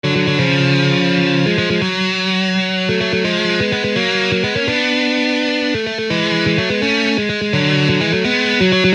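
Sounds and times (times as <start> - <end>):
musical lick: 0.1 - 8.9.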